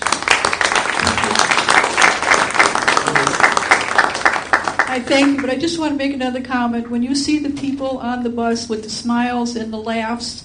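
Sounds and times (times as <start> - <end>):
round of applause: 0.0 - 5.5
speech: 5.0 - 10.4.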